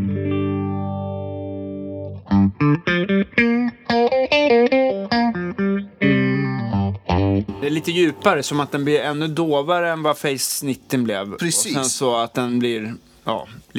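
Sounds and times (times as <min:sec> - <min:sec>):
electric guitar played through an effects pedal: 0:00.0 - 0:09.4
speech: 0:02.3 - 0:03.6, 0:07.7 - 0:13.7.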